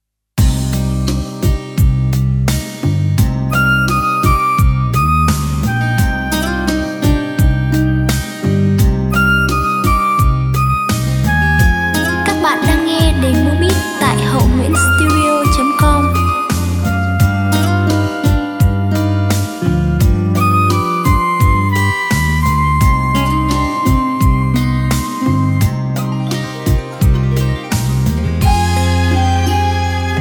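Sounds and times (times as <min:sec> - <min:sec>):
music beat: 0:00.4 - 0:30.2.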